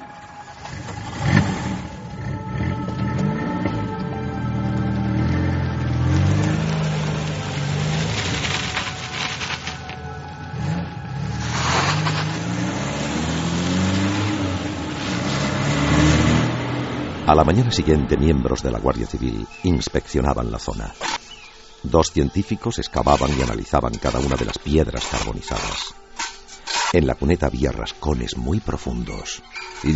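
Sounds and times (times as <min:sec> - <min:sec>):
old truck engine cranked, started and revving on a road: 0:00.2 - 0:19.2
speech: 0:17.3 - 0:21.2, 0:21.8 - 0:26.0, 0:26.9 - 0:29.9.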